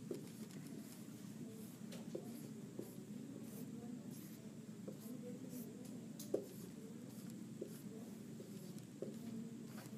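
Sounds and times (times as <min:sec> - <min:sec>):
pen scratching out a diagram: 0:00.1 - 0:09.9.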